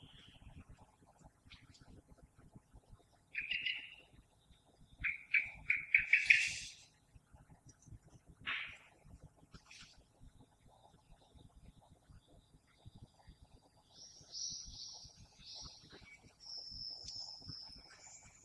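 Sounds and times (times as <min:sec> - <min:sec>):
blackbird singing: 0:03.4 - 0:04.1, 0:05.0 - 0:06.8, 0:13.9 - 0:18.4.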